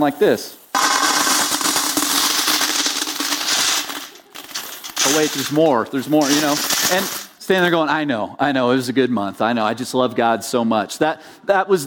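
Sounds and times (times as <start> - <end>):
speech: 0.0 - 0.6, 5.1 - 11.8
coins dropped into a copper offering box: 0.0 - 7.7.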